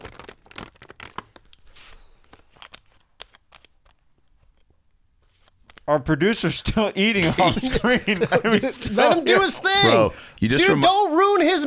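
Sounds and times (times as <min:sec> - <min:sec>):
plastic water bottle being crinkled and twisted: 0:00.0 - 0:04.6
speech: 0:05.9 - 0:11.6
laughter: 0:07.1 - 0:10.8.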